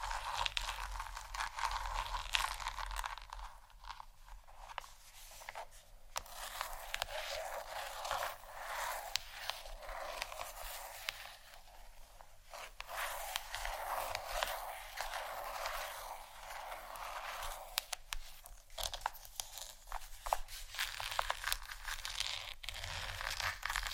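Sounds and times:
gentle scratching: 0.0s - 23.9s.

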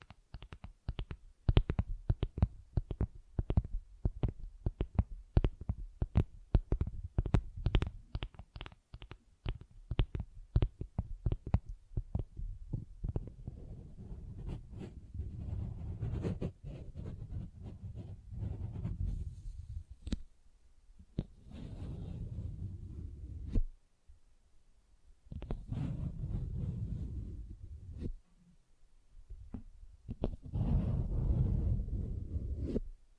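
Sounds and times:
scratching on textured surfaces: 0.0s - 20.2s, 21.2s - 23.6s, 25.3s - 28.2s, 29.5s - 32.8s.

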